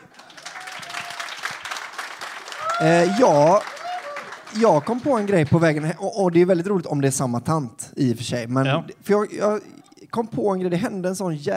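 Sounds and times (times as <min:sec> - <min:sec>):
audience applause: 0:00.0 - 0:06.1
speech: 0:02.8 - 0:03.7, 0:04.5 - 0:11.5.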